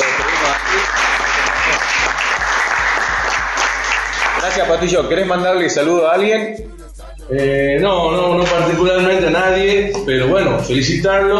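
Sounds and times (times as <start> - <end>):
applause: 0.0 - 4.7
speech: 4.4 - 11.3.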